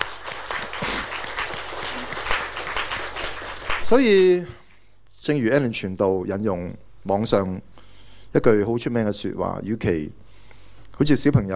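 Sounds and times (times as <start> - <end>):
audience applauding: 0.0 - 4.4
speech: 3.8 - 4.6, 5.3 - 7.7, 8.3 - 10.2, 11.0 - 11.5.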